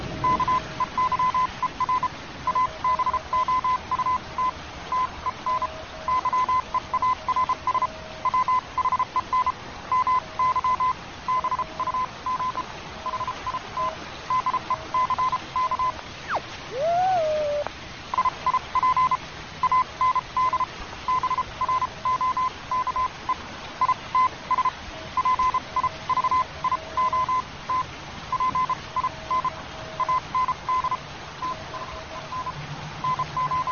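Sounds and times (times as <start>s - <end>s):
storm: 0.0s - 2.0s
rain: 0.0s - 33.7s.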